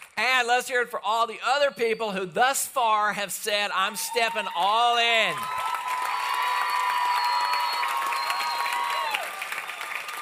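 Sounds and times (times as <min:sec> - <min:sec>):
speech: 0:00.4 - 0:05.7
audience clapping: 0:04.4 - 0:10.2.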